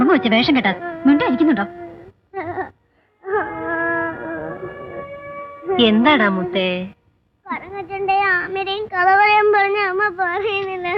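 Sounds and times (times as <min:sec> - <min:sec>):
little girl crying: 0:00.0 - 0:05.8
speech: 0:00.1 - 0:01.8, 0:05.8 - 0:07.0, 0:08.5 - 0:10.9.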